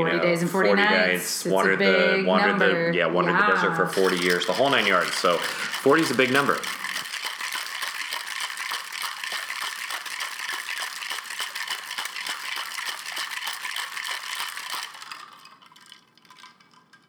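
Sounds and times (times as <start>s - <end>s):
speech: 0.0s - 7.0s
ice rattling inside a cocktail shaker: 3.9s - 17.0s.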